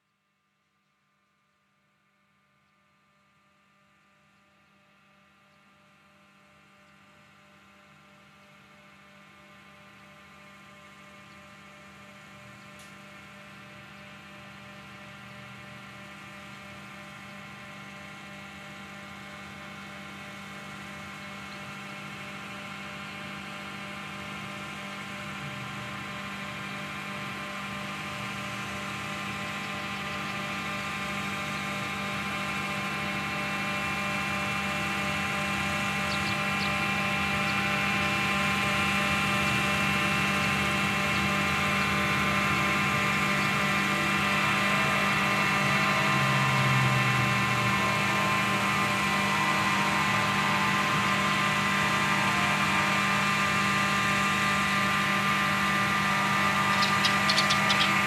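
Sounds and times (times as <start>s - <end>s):
siren: 11.7s - 58.0s.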